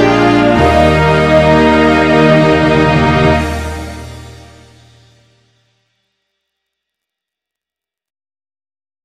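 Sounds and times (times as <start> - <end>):
national anthem in MIDI: 0.0 - 5.4.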